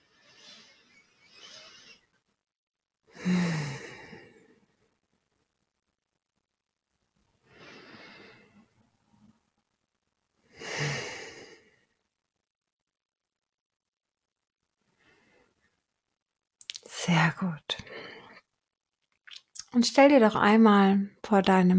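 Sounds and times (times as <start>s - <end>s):
deep breaths during guided meditation: 3.1s - 5.0s, 7.4s - 8.8s, 10.5s - 12.1s, 14.8s - 15.8s, 17.8s - 18.5s
speech: 17.1s - 17.9s, 19.8s - 21.7s.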